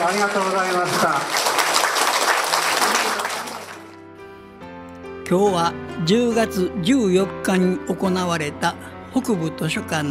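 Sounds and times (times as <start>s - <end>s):
audience applause: 0.0s - 4.0s
speech: 0.1s - 1.5s, 5.3s - 10.1s.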